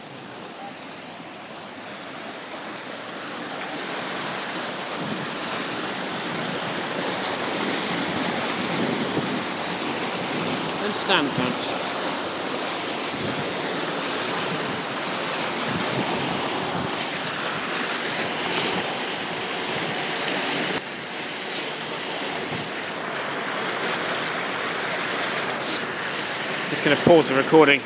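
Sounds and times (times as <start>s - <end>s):
water surging through the archway underneath Richmond Bridge: 0.0s - 27.8s
speech: 11.0s - 11.9s, 26.9s - 27.8s.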